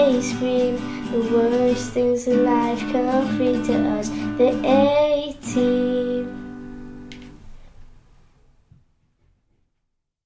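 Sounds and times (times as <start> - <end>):
acoustic music: 0.0 - 7.6.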